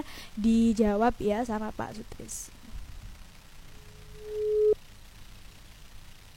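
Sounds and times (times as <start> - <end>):
speech: 0.0 - 2.6
telephone ringback tone: 3.9 - 4.8.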